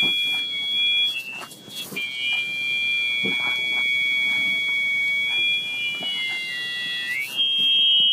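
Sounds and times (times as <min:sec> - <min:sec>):
hearing aid feedback squeal: 0:00.0 - 0:08.1.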